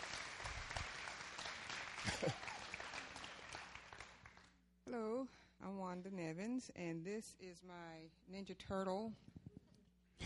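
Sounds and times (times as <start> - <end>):
audience applauding a presenter's work: 0.0 - 4.5
speech: 2.1 - 2.5, 4.9 - 9.3.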